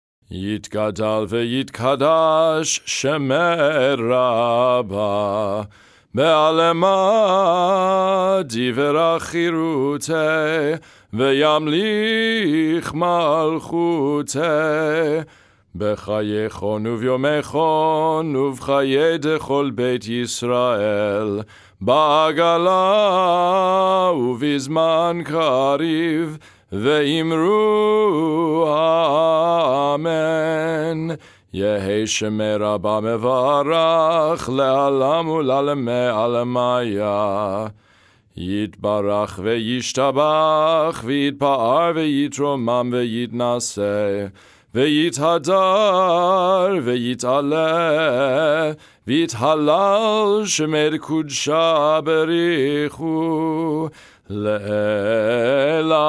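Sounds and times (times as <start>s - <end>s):
festival Ma ariv prayer chant melody: 0.3s - 15.2s, 15.8s - 37.7s, 38.4s - 56.0s.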